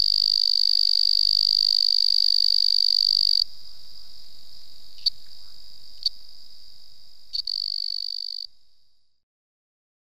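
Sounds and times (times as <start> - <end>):
Afrixalus weidholzi calling: 0.0 - 6.4, 7.3 - 8.5.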